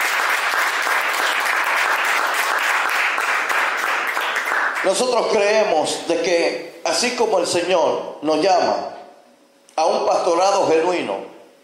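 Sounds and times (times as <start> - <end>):
audience applause: 0.0 - 5.0
speech: 4.8 - 8.9, 9.8 - 11.3.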